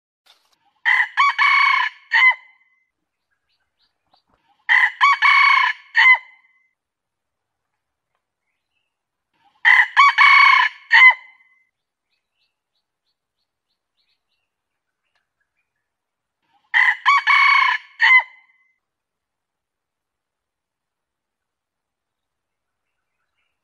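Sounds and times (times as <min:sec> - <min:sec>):
junglefowl crowing: 0:00.8 - 0:02.5, 0:04.7 - 0:06.4, 0:09.6 - 0:11.3, 0:16.7 - 0:18.4.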